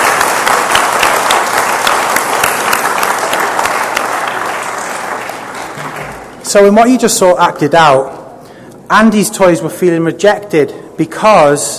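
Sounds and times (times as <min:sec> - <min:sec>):
audience applause: 0:00.0 - 0:06.4
speech: 0:06.5 - 0:08.2, 0:08.9 - 0:11.7.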